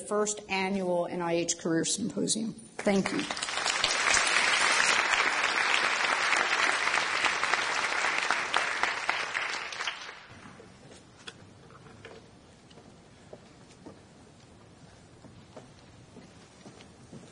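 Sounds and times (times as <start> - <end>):
speech: 0.1 - 3.7
applause: 2.8 - 10.4.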